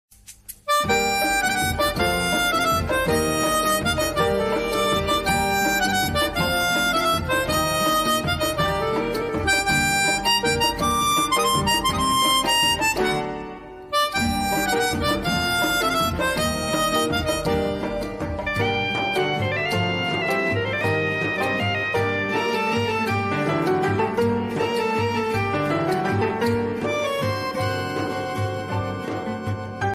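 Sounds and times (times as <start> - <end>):
instrumental ringtone: 0.7 - 13.3, 13.9 - 29.9.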